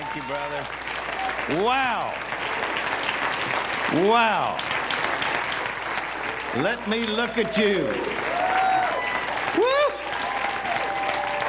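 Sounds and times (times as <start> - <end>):
audience applause: 0.0 - 11.4
speech: 0.2 - 2.7, 3.5 - 4.8, 6.5 - 8.3
rising vocal whoop: 8.2 - 11.4.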